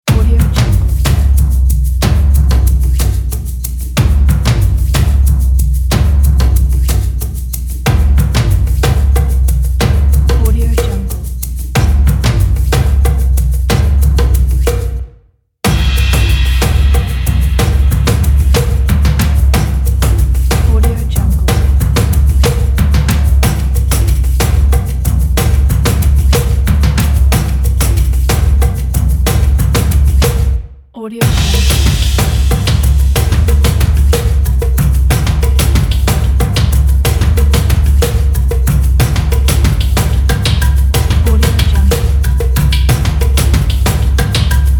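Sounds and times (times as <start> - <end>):
upbeat percussion: 0.0 - 44.7.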